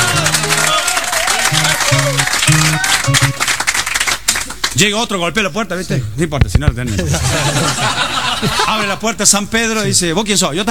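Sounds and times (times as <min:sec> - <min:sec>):
audience applause: 0:00.0 - 0:04.7
speech: 0:04.8 - 0:10.7
laughter: 0:06.9 - 0:09.0.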